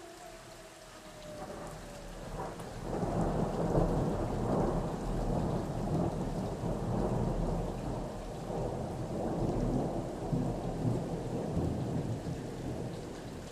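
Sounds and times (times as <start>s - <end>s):
storm siren: 0.0s - 13.4s.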